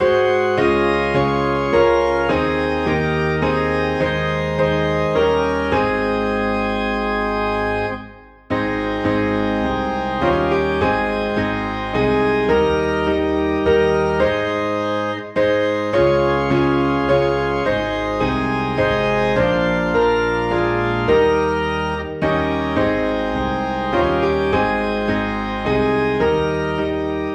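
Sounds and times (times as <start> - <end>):
organ in A flat: 0.0 - 27.3
piano in A flat: 0.0 - 27.3.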